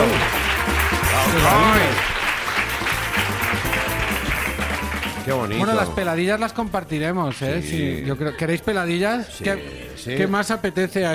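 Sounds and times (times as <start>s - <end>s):
audience applause: 0.0s - 5.6s
speech: 5.5s - 11.1s.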